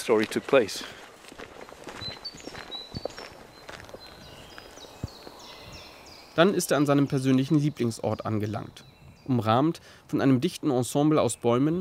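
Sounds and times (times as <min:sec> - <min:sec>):
speech: 0:00.0 - 0:01.0, 0:06.4 - 0:11.7
footsteps on forest paths near Oxbøl: 0:00.0 - 0:09.3.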